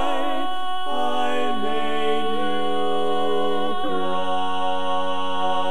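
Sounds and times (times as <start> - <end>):
tenor singing barbershop tags: 0.1 - 5.5.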